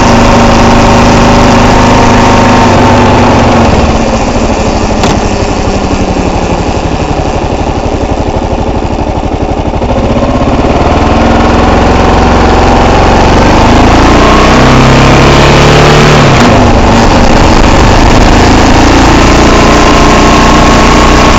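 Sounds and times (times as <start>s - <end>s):
KLR650 motorcycle riding: 0.0s - 21.3s
unidentified motorcycle noise: 3.7s - 7.4s.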